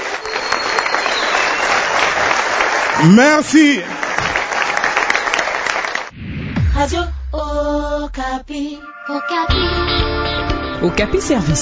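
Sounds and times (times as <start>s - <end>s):
audience applause: 0.0s - 6.1s
speech: 3.0s - 3.9s, 6.8s - 11.5s.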